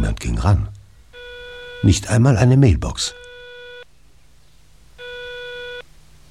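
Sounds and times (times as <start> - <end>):
speech: 0.1 - 0.8, 1.8 - 3.3
telephone ringing unanswered: 1.2 - 2.0, 3.0 - 3.8, 5.0 - 5.8.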